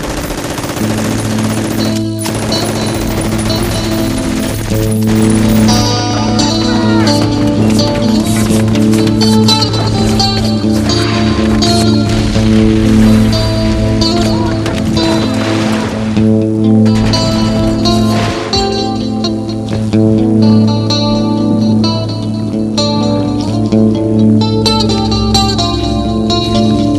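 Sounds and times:
acoustic guitar playing: 0:00.2 - 0:26.9.

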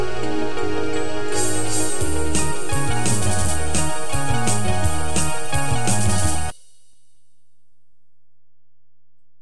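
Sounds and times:
Chinese rock instrumental: 0:00.0 - 0:06.5.

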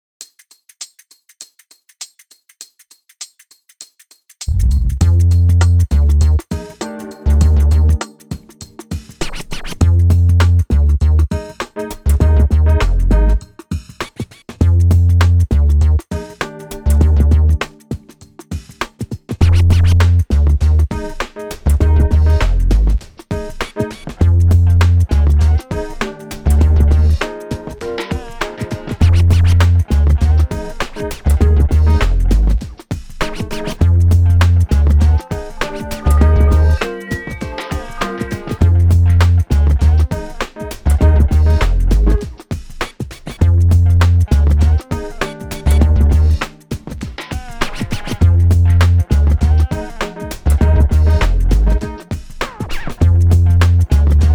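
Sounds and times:
spy groove music: 0:04.5 - 0:54.3.

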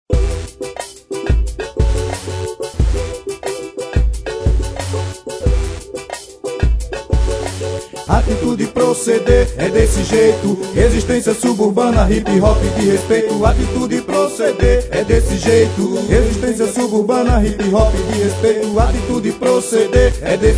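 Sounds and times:
hip hop music: 0:00.1 - 0:20.5.

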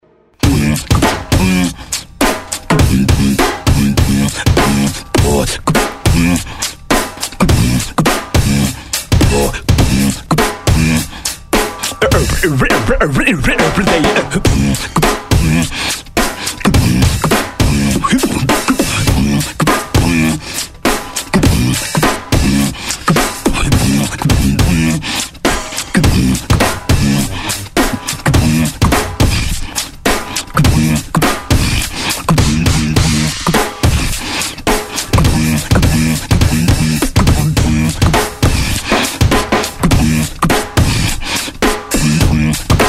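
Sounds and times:
music beat: 0:00.3 - 0:42.8.

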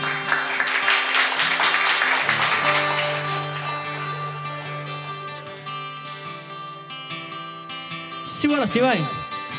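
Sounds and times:
audience applause: 0:00.0 - 0:05.6
speech: 0:08.4 - 0:09.2.

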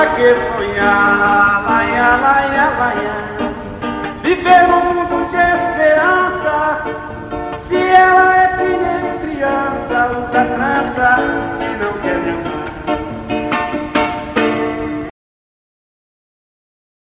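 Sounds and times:
voice: 0:00.0 - 0:13.2
acoustic guitar: 0:00.0 - 0:15.1.

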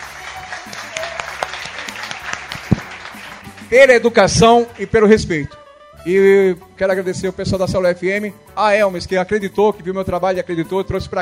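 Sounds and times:
audience applause: 0:00.0 - 0:03.9
speech: 0:03.7 - 0:11.2.

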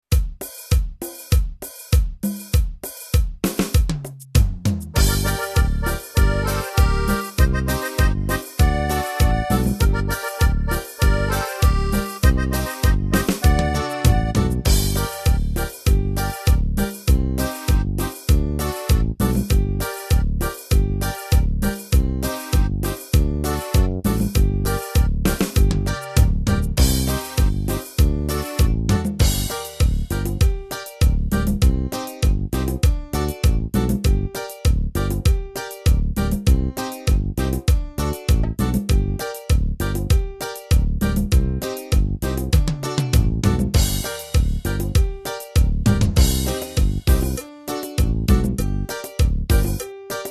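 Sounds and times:
Yamaha keyboard cumbia rhythm: 0:00.0 - 0:50.3.

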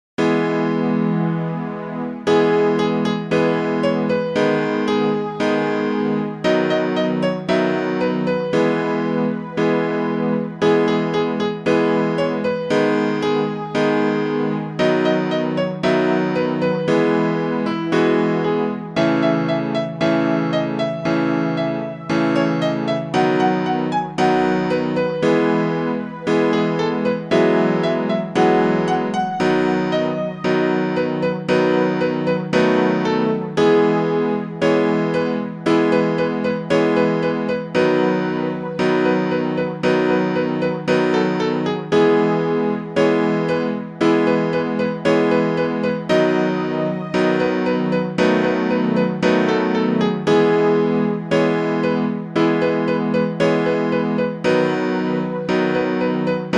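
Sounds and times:
forro piano music: 0:00.2 - 0:56.5.

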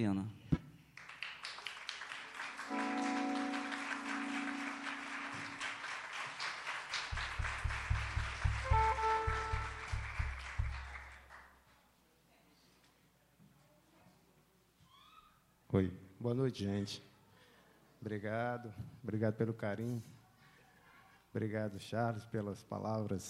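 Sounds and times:
speech: 0:00.0 - 0:00.4, 0:15.8 - 0:17.1, 0:18.0 - 0:20.2, 0:21.3 - 0:23.2
audience standing ovation applause: 0:01.0 - 0:11.6.

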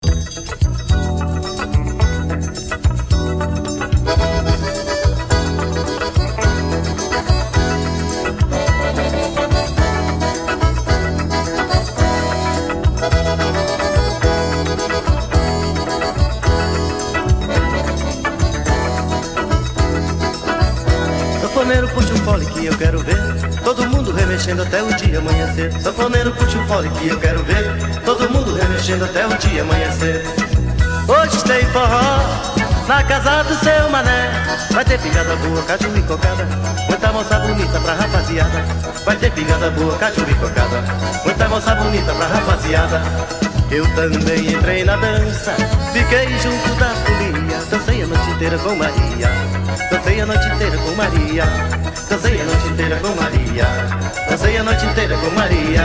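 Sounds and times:
forró music: 0:00.0 - 0:55.8.

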